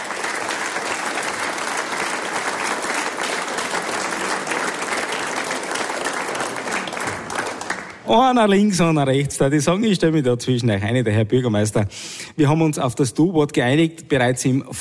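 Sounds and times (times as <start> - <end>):
audience applause: 0.0 - 8.1
speech: 8.1 - 14.7.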